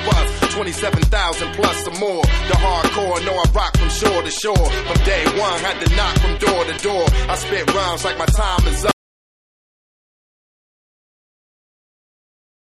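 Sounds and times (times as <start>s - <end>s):
vocals: 0.0s - 9.0s.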